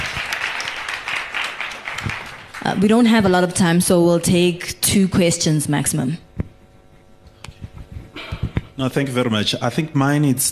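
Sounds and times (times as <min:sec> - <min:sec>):
audience applause: 0:00.0 - 0:02.8
speech: 0:02.6 - 0:06.2, 0:08.8 - 0:10.4.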